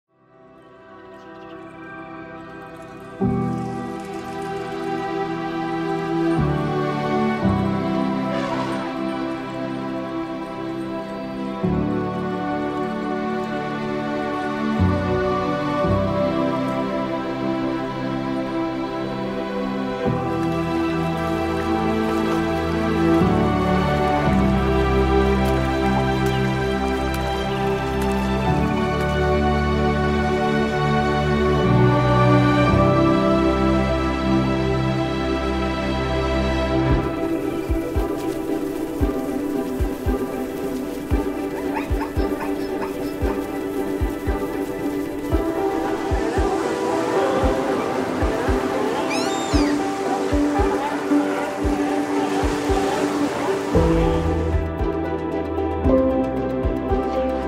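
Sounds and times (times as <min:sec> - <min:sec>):
calming music: 0:00.1 - 0:57.4.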